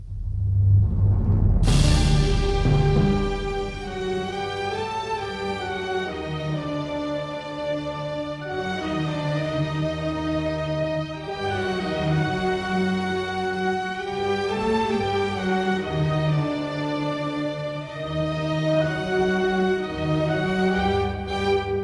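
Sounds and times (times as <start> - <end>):
film music: 0.0 - 21.8.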